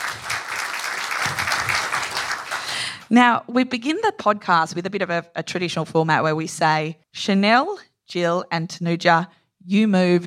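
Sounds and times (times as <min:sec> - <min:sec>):
audience applause: 0:00.0 - 0:03.0
speech: 0:03.1 - 0:10.2.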